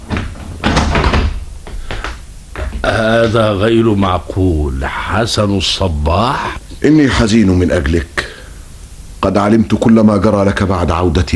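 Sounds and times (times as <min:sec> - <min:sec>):
door being opened in a radio drama: 0:00.0 - 0:01.5
speech: 0:02.8 - 0:08.2, 0:09.2 - 0:11.3.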